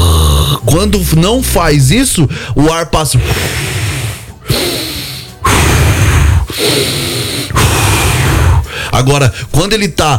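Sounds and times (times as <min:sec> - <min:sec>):
voice imitating snoring: 0:00.0 - 0:01.7, 0:03.2 - 0:08.6
speech: 0:00.7 - 0:03.8, 0:08.9 - 0:10.1.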